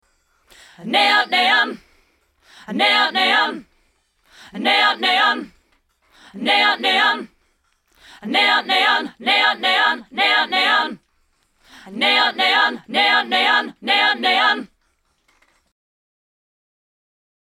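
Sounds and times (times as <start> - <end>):
choir singing: 0.7 - 1.9, 2.6 - 3.7, 4.5 - 5.6, 6.3 - 7.3, 8.2 - 11.0, 11.8 - 14.7.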